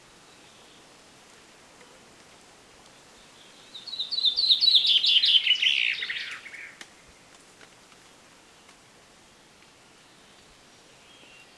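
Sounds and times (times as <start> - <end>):
common chaffinch Fringilla coelebs singing: 3.4 - 6.8.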